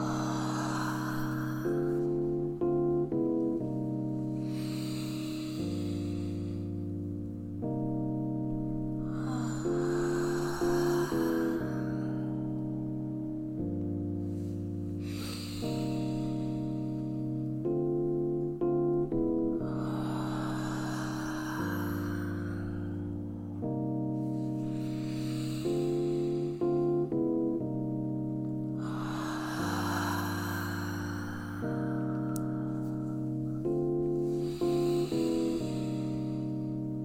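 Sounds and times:
slow deep breathing during a guided breathing session: 0.0s - 37.0s.

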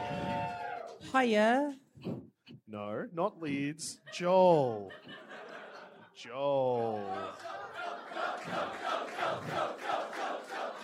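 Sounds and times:
speech: 1.1s - 5.4s, 6.2s - 7.6s
laughter: 3.9s - 10.8s
crowd of friends chanting: 6.8s - 10.8s.

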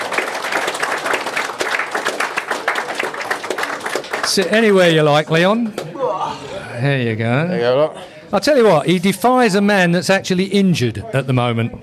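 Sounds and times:
crowd applauding: 0.0s - 5.9s
speech: 4.4s - 5.9s, 6.8s - 11.8s.

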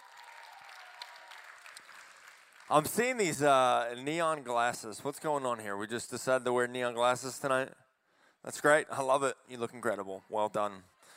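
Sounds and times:
crowd clapping: 0.0s - 3.4s
speech: 2.7s - 7.8s, 8.4s - 10.9s.

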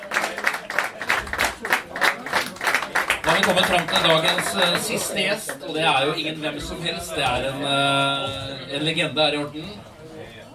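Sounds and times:
audience applause: 0.0s - 5.6s
speech: 3.4s - 9.9s.

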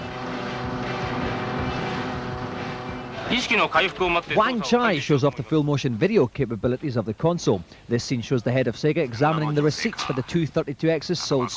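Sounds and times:
engine drone from the racing video game Gale Racer: 0.0s - 4.7s
speech: 3.3s - 11.5s.

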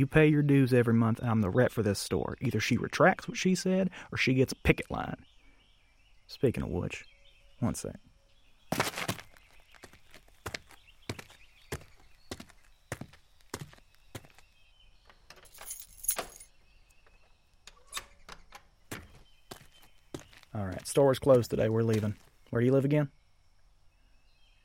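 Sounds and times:
speech: 0.0s - 5.3s, 6.3s - 8.1s, 21.0s - 23.2s
keys jangling as a store is locked up: 15.3s - 16.6s.

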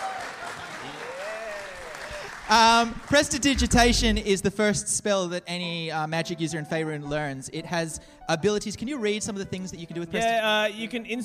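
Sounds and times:
audience applause: 0.0s - 3.6s
speech: 2.5s - 11.2s.

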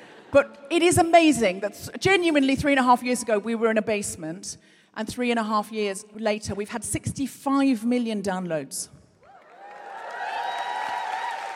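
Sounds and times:
speech: 0.3s - 9.0s
audience cheering and applause: 9.2s - 11.5s.

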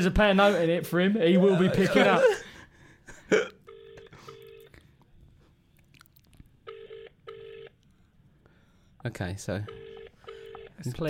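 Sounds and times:
speech: 0.0s - 2.5s, 3.3s - 3.6s, 9.0s - 9.8s, 10.8s - 11.0s
laughter: 0.3s - 3.3s
phone ringing tone on loudspeaker: 3.7s - 4.8s, 6.7s - 7.8s, 9.7s - 11.0s.

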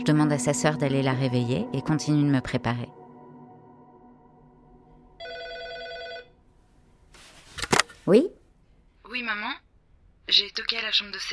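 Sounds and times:
speech: 0.0s - 3.0s, 8.1s - 8.4s, 9.1s - 9.6s, 10.3s - 11.3s
hotel room telephone ringing: 5.2s - 6.5s.

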